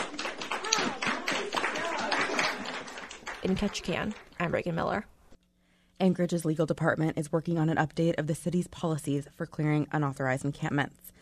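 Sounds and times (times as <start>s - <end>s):
rowdy applause: 0.0s - 4.4s
speech: 3.4s - 5.2s, 6.0s - 11.1s.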